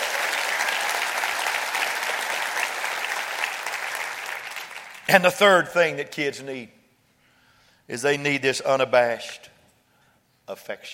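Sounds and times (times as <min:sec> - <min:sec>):
audience clapping hands: 0:00.0 - 0:05.5
speech: 0:05.1 - 0:06.8, 0:07.9 - 0:09.5, 0:10.5 - 0:10.9.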